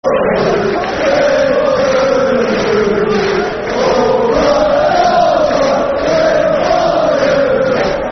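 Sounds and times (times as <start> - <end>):
football crowd chanting: 0.0 - 8.1.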